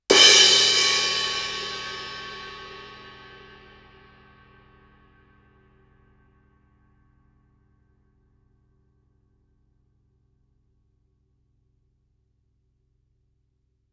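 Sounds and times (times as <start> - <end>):
suspended cymbal crash with stick shoulder fortissimo: 0.1 - 4.0.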